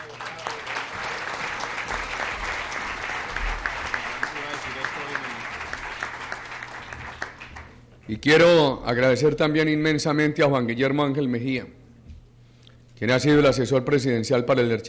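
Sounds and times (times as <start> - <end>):
audience applause: 0.0 - 7.9
speech: 8.1 - 11.8, 13.0 - 14.8.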